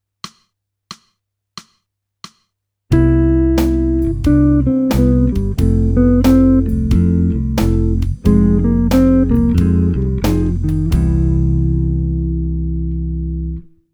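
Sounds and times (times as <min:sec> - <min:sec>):
jazz music: 0:02.9 - 0:13.6.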